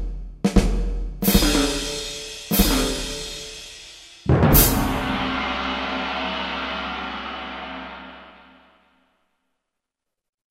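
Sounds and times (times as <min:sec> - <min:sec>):
synthesized orchestral percussion from Kurzweil K2000 ROM: 0:00.0 - 0:08.8
synthesized timpani from Kurzweil K2000 orchestral ROM: 0:01.2 - 0:09.0.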